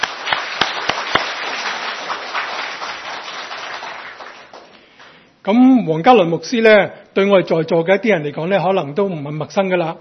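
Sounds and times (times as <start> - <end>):
audience applause welcoming guests: 0.0 - 5.2
speech: 5.5 - 9.9.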